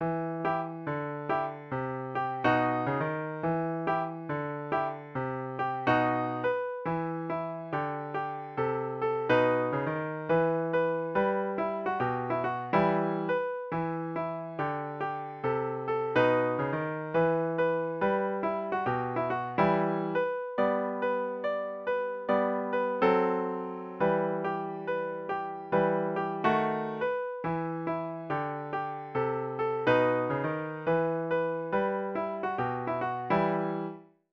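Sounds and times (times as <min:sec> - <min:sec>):
piano: 0:00.0 - 0:34.3.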